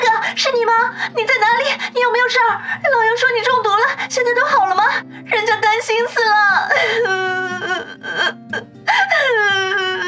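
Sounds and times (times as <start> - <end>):
speech: 0.9 - 9.7
person choked crying and sobbing: 6.4 - 10.0.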